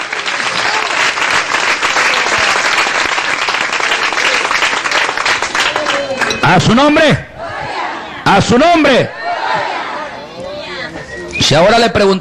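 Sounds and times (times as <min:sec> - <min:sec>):
audience applause: 0:00.0 - 0:06.6
speech: 0:06.5 - 0:07.3, 0:08.2 - 0:09.2, 0:11.5 - 0:12.1.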